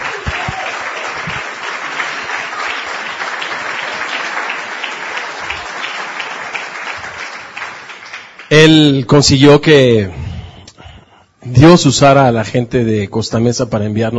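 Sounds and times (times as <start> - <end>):
audience applause: 0.0 - 8.5
speech: 8.5 - 10.2, 11.5 - 14.1.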